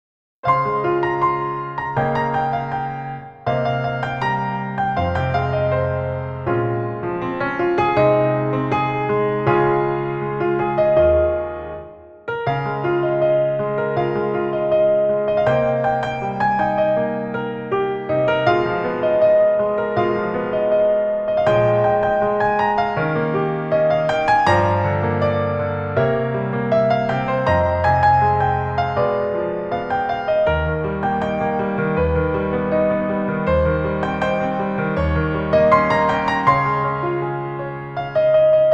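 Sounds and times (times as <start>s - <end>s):
piano arrangement: 0.4s - 38.7s.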